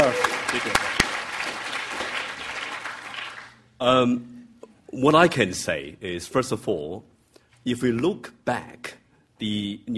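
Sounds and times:
audience applause: 0.0s - 3.6s
speech: 0.6s - 1.0s, 3.8s - 4.3s, 4.9s - 9.9s.

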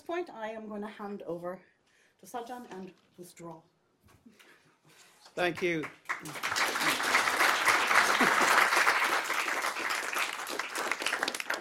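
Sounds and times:
speech: 0.1s - 4.5s, 5.4s - 6.8s
audience applause: 5.6s - 11.5s.

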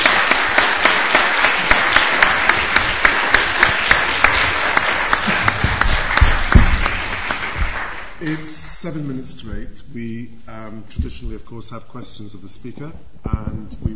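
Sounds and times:
crowd applauding: 0.0s - 8.5s
speech: 8.3s - 13.9s.

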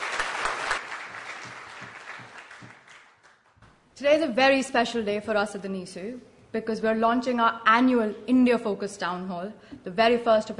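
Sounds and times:
audience applause: 0.0s - 3.6s
speech: 4.0s - 10.5s.

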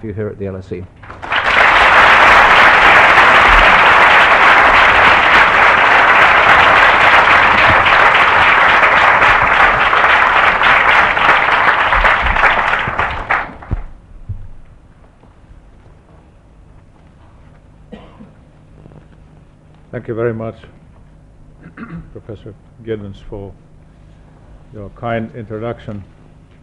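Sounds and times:
speech: 0.0s - 1.2s, 20.0s - 20.8s, 21.8s - 23.7s, 24.7s - 26.2s
clapping welcoming a speaker to the podium: 1.0s - 13.9s.

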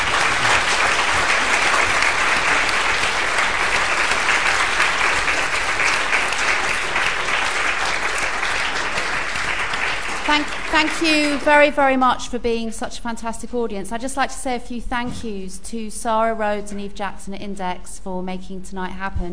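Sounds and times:
audience applause: 0.0s - 11.5s
speech: 10.8s - 19.3s.

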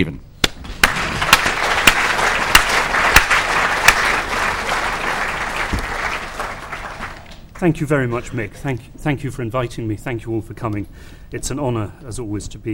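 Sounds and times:
speech: 0.0s - 0.2s, 7.6s - 12.7s
audience applauding: 0.6s - 7.8s.

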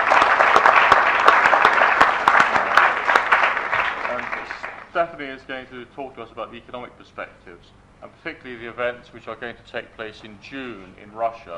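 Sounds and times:
audience applause: 0.0s - 4.9s
speech: 5.0s - 11.5s.

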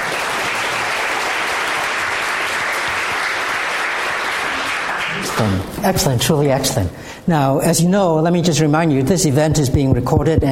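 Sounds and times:
audience applauding: 0.0s - 5.7s
speech: 5.4s - 10.5s.

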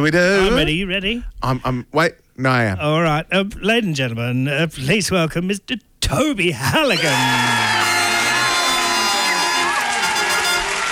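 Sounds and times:
speech: 0.0s - 7.7s
studio audience cheering and whooping: 6.9s - 10.8s.

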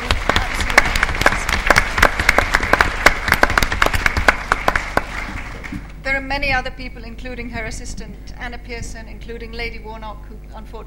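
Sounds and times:
audience applause: 0.0s - 5.9s
speech: 6.3s - 10.8s.

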